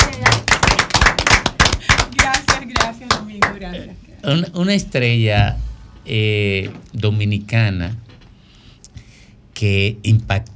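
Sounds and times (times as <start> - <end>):
applause: 0.0 - 3.6
speech: 3.8 - 8.0, 9.6 - 10.5.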